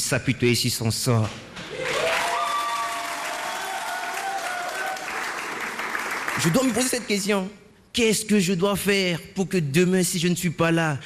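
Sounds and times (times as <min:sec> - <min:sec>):
speech: 0:00.1 - 0:01.9, 0:06.4 - 0:11.0
audience applause: 0:01.7 - 0:06.8.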